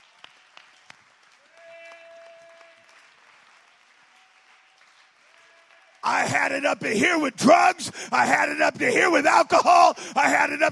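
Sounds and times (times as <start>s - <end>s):
congregation clapping in praise: 0.0s - 7.4s
speech: 6.1s - 10.6s.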